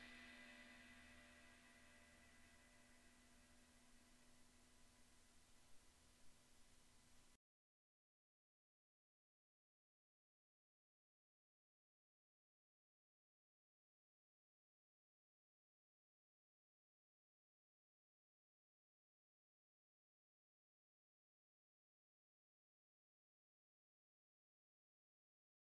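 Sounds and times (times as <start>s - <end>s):
18-inch crash ride cymbal: 0.0s - 6.9s.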